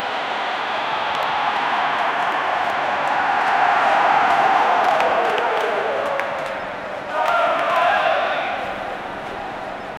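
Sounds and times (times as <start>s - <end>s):
stadium crowd: 0.0s - 9.9s.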